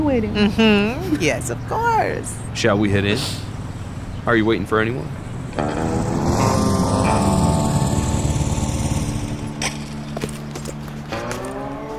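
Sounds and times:
speech: 0.1 - 3.5, 4.2 - 6.6
motorcycle engine arriving: 1.3 - 11.9.

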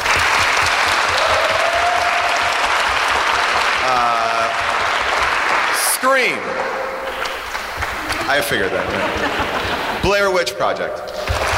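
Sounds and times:
loud sustained applause from a large audience: 0.0 - 10.0, 11.2 - 11.5
faint cheers and whistles: 1.1 - 2.8
laughter: 3.8 - 4.7, 7.8 - 10.2
speech: 8.3 - 11.4.

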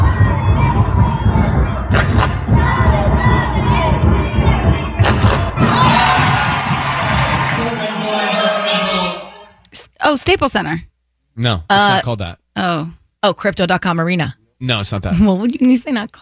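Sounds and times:
heavy thuds: 0.0 - 7.6
crowd cheering and shouting at an LAFC soccer game at BMO Stadium in Los Angeles: 0.0 - 9.6
speech: 10.1 - 16.1.

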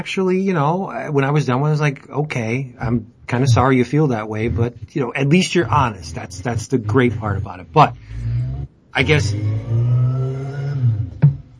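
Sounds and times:
speech: 0.0 - 10.0
small vehicle engine revving: 3.3 - 11.5.

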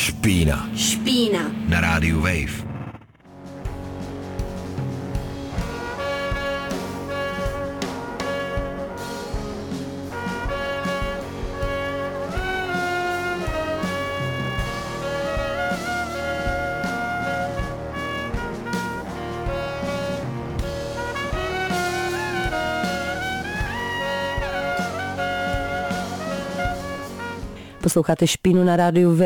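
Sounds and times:
speech: 0.0 - 2.7, 27.9 - 29.2
music track: 0.0 - 27.8.

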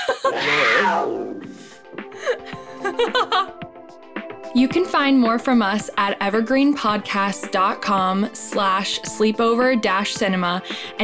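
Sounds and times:
person chuckling: 0.0 - 0.6, 2.1 - 3.6
voice imitating a roar: 0.3 - 1.5
speech: 0.3 - 1.6, 3.0 - 3.6, 4.5 - 11.0.

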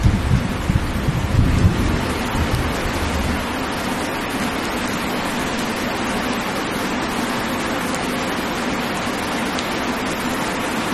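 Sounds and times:
light thunder rumbling: 0.0 - 5.6
gentle rain: 0.0 - 10.9.

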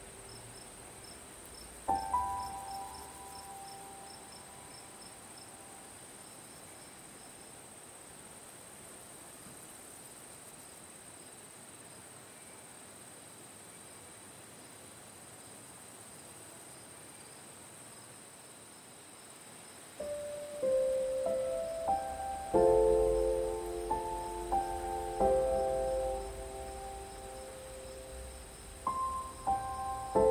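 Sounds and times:
piano notes and chords: 0.0 - 5.9, 20.0 - 30.2
soft crickets chirping at night: 0.0 - 30.2.

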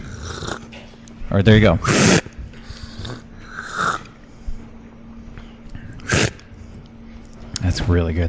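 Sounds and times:
slurping hot tea: 0.0 - 0.6, 1.8 - 4.1, 6.0 - 6.4
speech: 1.3 - 2.2, 7.8 - 8.2.

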